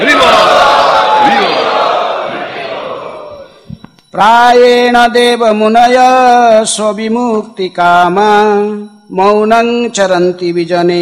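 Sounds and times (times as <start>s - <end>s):
crowd of devotees at the Sri Radha Vrindavan Chandra temple chanting in unison: 0.0s - 3.6s
speech: 4.2s - 11.0s.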